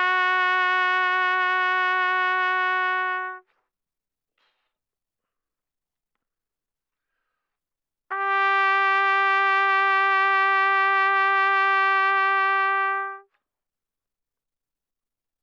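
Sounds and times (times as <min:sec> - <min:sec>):
trumpet vibrato at mezzo-forte from C4 to B4: 0:00.0 - 0:03.4, 0:08.1 - 0:13.3.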